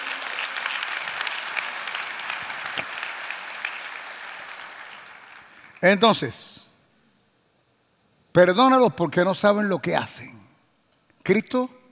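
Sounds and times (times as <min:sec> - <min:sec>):
audience applauding: 0:00.0 - 0:05.8
speech: 0:05.8 - 0:06.4, 0:08.4 - 0:10.4, 0:11.2 - 0:11.8.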